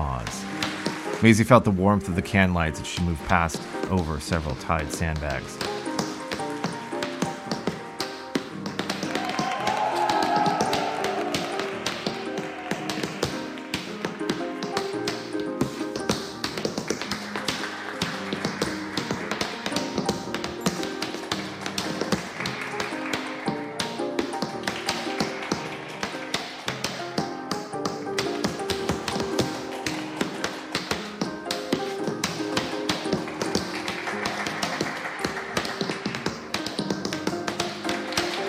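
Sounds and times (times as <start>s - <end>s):
steady tonal musical background: 0.0s - 38.4s
tap-dancing steps on a stage: 0.0s - 38.4s
speech: 1.2s - 5.7s.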